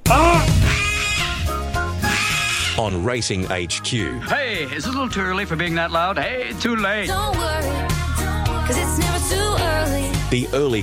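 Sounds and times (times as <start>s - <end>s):
crow cawing on the roof of the grandstand: 0.5s - 2.8s, 4.2s - 5.0s
speech: 2.8s - 8.0s, 8.7s - 10.8s.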